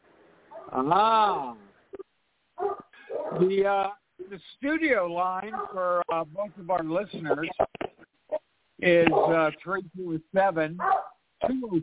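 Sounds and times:
hound dog baying: 0:00.5 - 0:00.8, 0:02.6 - 0:03.4, 0:05.4 - 0:05.8, 0:10.8 - 0:11.2
hound dog yipping: 0:00.5 - 0:00.8, 0:02.6 - 0:03.4, 0:10.8 - 0:11.2
speech: 0:00.7 - 0:01.6, 0:03.3 - 0:07.6, 0:08.8 - 0:11.8.

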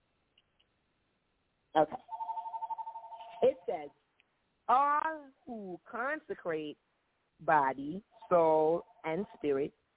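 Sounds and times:
speech: 0:01.8 - 0:02.1, 0:03.4 - 0:04.0, 0:04.7 - 0:09.8
telephone ringing: 0:02.1 - 0:03.8.

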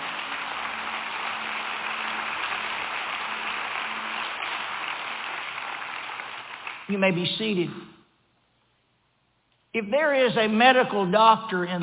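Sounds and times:
audience clapping hands: 0:00.0 - 0:07.4
speech: 0:06.9 - 0:08.0, 0:09.8 - 0:11.8.

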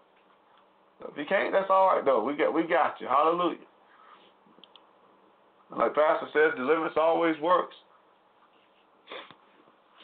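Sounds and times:
speech: 0:01.1 - 0:03.7, 0:05.7 - 0:07.9
sneeze: 0:09.0 - 0:09.4.

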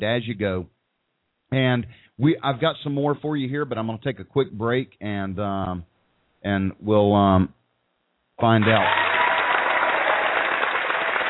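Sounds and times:
speech: 0:00.0 - 0:00.8, 0:01.5 - 0:07.6, 0:08.4 - 0:09.0
crowd applause: 0:08.6 - 0:11.2.

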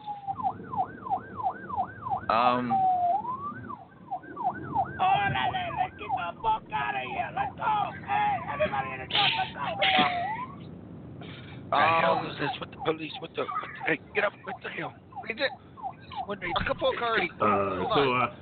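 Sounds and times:
police car sirens wailing outside: 0:00.0 - 0:18.4
voices: 0:02.3 - 0:03.0, 0:04.8 - 0:10.6, 0:11.7 - 0:18.4.

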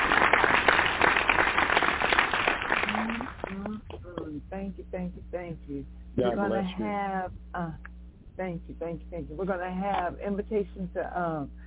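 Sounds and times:
audience applause: 0:00.0 - 0:03.6
speech: 0:04.7 - 0:11.6.

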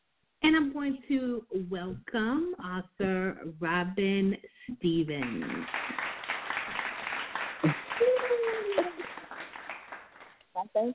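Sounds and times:
speech: 0:00.5 - 0:06.0, 0:10.6 - 0:10.9
applause: 0:05.2 - 0:10.4.

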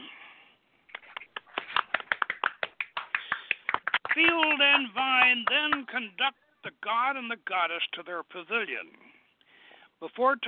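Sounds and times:
celebrants applauding: 0:00.9 - 0:06.0
speech: 0:04.2 - 0:09.0, 0:10.0 - 0:10.4.

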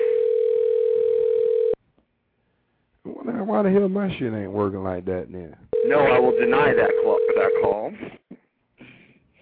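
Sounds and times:
telephone ringback tone on the line: 0:00.0 - 0:01.8, 0:05.8 - 0:07.8
speech: 0:03.5 - 0:08.4.

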